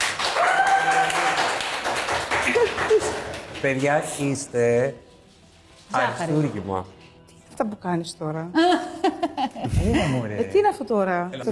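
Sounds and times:
audience clapping: 0:00.0 - 0:04.5
laughter: 0:02.4 - 0:03.4, 0:08.6 - 0:10.2
speech: 0:03.6 - 0:05.1, 0:05.9 - 0:07.0, 0:07.6 - 0:09.0, 0:09.6 - 0:11.5.

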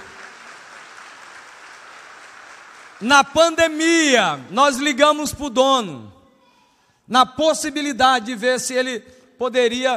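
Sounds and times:
audience applauding: 0:00.0 - 0:03.8
speech: 0:03.0 - 0:06.2, 0:07.1 - 0:09.9.

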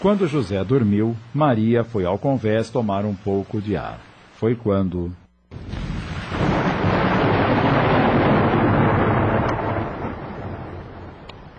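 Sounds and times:
speech: 0:00.0 - 0:05.2
thunder rumbling: 0:05.5 - 0:11.5.

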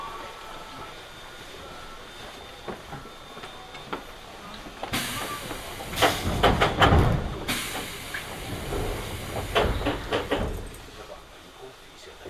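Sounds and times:
Hokuso Railway to Toei Asakusa Line train ride from Higashi-Matsudo to Ningyocho: 0:00.0 - 0:12.2.

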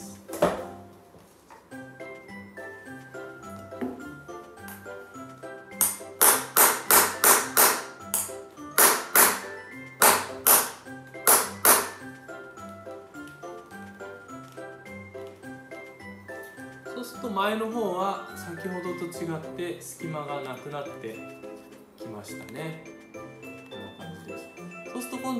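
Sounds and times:
back of hammer tapping shoe sole: 0:05.7 - 0:12.1
speech: 0:17.2 - 0:21.4, 0:22.2 - 0:22.9.

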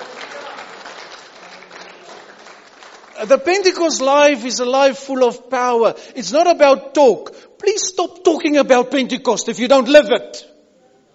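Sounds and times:
audience clapping: 0:00.0 - 0:04.0
speech: 0:03.2 - 0:10.5.

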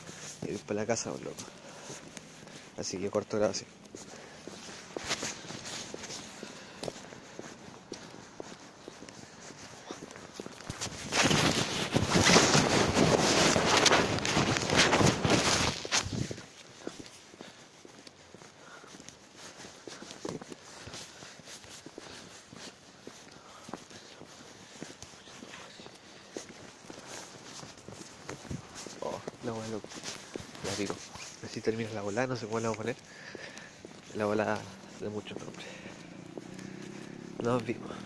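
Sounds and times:
footsteps of a person walking home: 0:00.0 - 0:38.0
speech: 0:00.4 - 0:02.0, 0:02.8 - 0:04.1, 0:32.2 - 0:33.0, 0:34.2 - 0:35.4, 0:37.4 - 0:38.0
loud rushing burst of wind: 0:11.0 - 0:16.4.

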